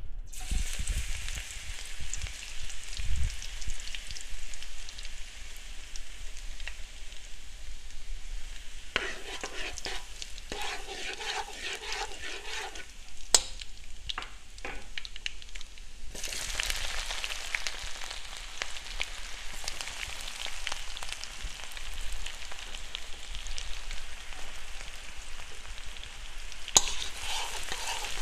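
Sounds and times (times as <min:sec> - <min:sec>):
garlic sizzling in hot olive oil: 0:00.3 - 0:28.2
stirring scraping in pan: 0:08.9 - 0:13.6, 0:26.8 - 0:28.2.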